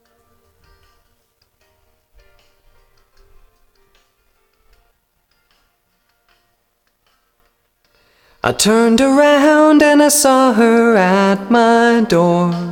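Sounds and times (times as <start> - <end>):
different vocals: 8.4 - 12.6.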